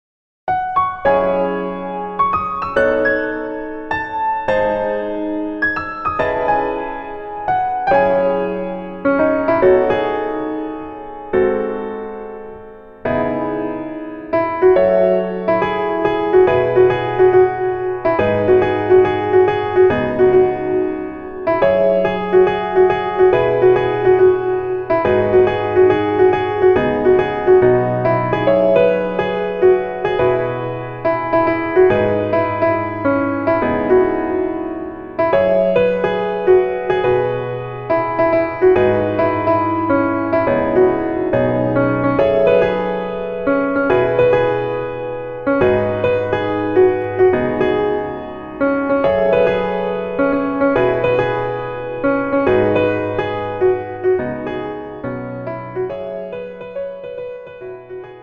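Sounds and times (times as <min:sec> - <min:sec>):
piano melody backing track in female key: 0:00.5 - 0:58.2.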